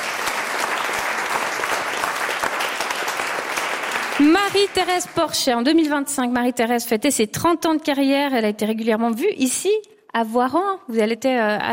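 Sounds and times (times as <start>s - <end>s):
audience applause: 0.0s - 5.4s
speech: 4.2s - 11.7s.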